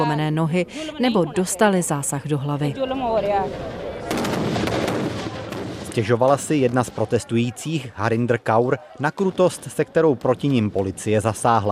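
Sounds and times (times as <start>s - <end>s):
speech: 0.0s - 3.9s, 6.0s - 11.7s
tear gas grenades being fired: 4.0s - 7.0s.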